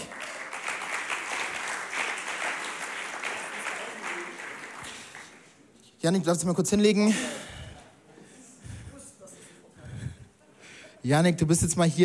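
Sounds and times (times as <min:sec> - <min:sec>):
audience applause: 0:00.0 - 0:05.6
speech: 0:06.0 - 0:07.4, 0:11.1 - 0:12.0.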